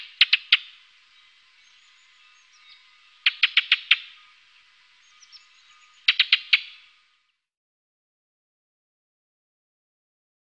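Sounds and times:
ring ouzel clicking tacks: 0:00.0 - 0:07.0
soft background bird twittering: 0:00.0 - 0:07.4.

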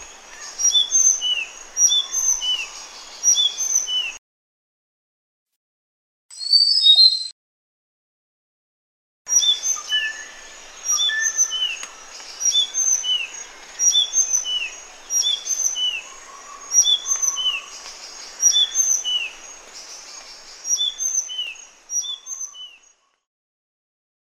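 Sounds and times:
sikatan sunda bird singing: 0:00.0 - 0:04.2, 0:06.3 - 0:07.3, 0:09.3 - 0:23.2.

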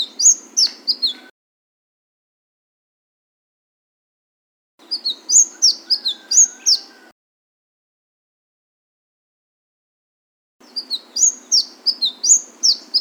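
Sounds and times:
Flame-breasted sunbird song of shrill slurred chirps: 0:00.0 - 0:01.3, 0:04.8 - 0:07.1, 0:10.6 - 0:12.9.

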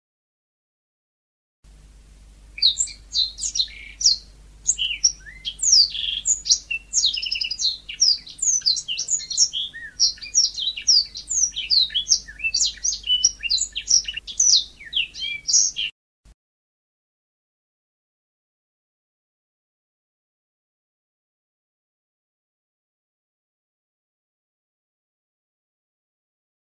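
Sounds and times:
sanma bird high upslurred notes and trill: 0:02.6 - 0:15.9.

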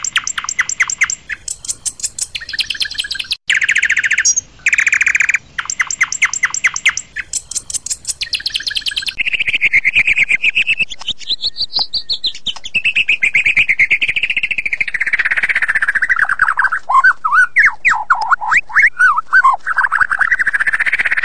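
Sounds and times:
white-rumped shama singing whistled notes, chattering and trills: 0:00.0 - 0:21.2.

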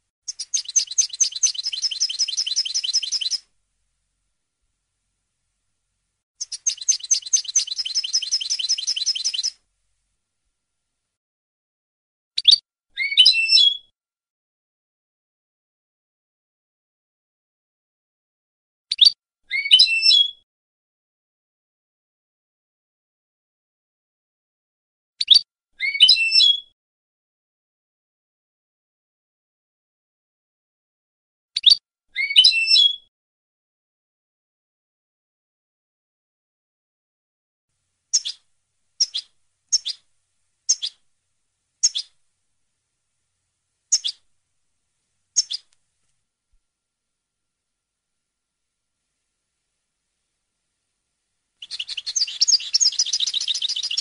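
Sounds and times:
European goldfinch song: 0:00.3 - 0:03.5, 0:06.4 - 0:09.6, 0:12.4 - 0:13.9, 0:18.9 - 0:20.4, 0:25.2 - 0:26.7, 0:31.6 - 0:33.1, 0:38.1 - 0:41.0, 0:41.8 - 0:42.2, 0:43.9 - 0:44.3, 0:45.4 - 0:45.8, 0:51.6 - 0:54.0.

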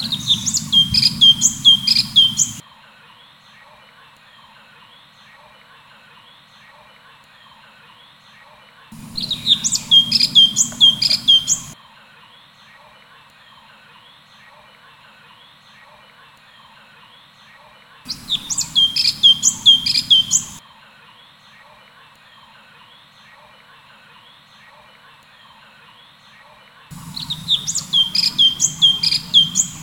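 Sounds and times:
cucak cungkok bird chirping: 0:00.0 - 0:02.6, 0:08.9 - 0:11.8, 0:18.1 - 0:20.6, 0:26.9 - 0:29.8.

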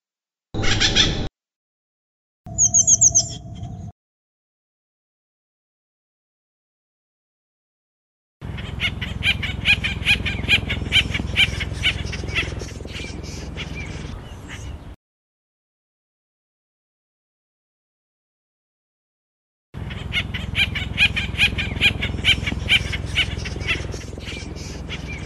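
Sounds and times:
Acorn woodpecker calling in harsh repeated notes: 0:00.6 - 0:01.3, 0:02.5 - 0:03.9, 0:08.4 - 0:15.0, 0:19.8 - 0:25.2.

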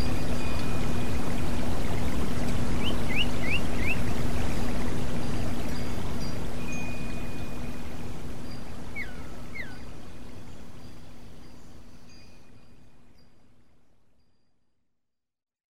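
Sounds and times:
water trickling: 0:00.0 - 0:14.5
kacer magpie robin singing: 0:02.8 - 0:04.0, 0:09.0 - 0:09.8.

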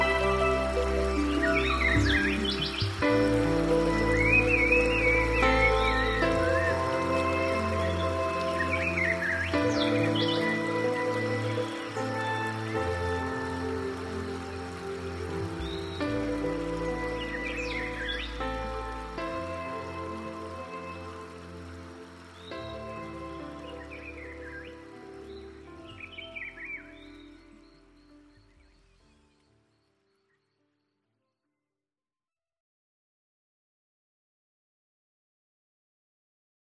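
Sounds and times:
forest ambience: 0:00.0 - 0:30.6.

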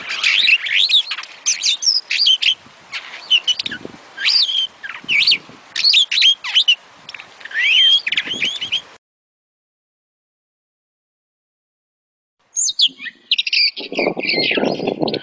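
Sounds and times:
starling singing clipped chirps, squeaky whistles and buzzy notes: 0:00.0 - 0:09.0, 0:12.5 - 0:15.2.

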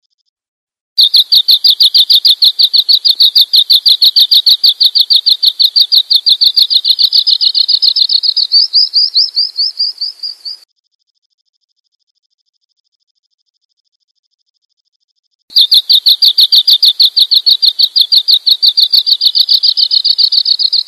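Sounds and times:
bird chirping: 0:01.0 - 0:10.6, 0:15.5 - 0:20.8.

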